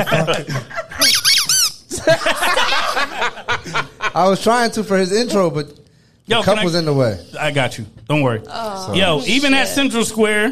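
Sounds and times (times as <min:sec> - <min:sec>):
laughter: 0:00.0 - 0:01.1, 0:01.9 - 0:04.5
speech: 0:00.0 - 0:01.1, 0:02.0 - 0:10.5
rubber duck squeaking: 0:01.0 - 0:01.8.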